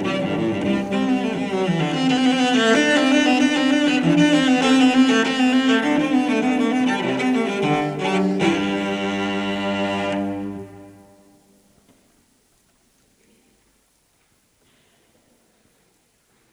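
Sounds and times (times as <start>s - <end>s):
cello suite: 0.0s - 11.5s.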